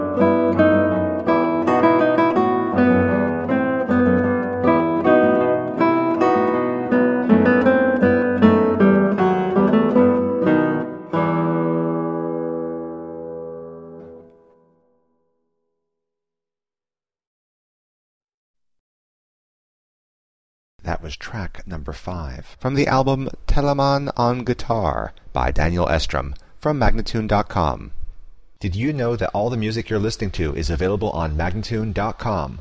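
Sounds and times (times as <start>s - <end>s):
guitar siciliana: 0.0s - 15.0s
person speaking: 20.8s - 28.0s, 28.6s - 32.5s.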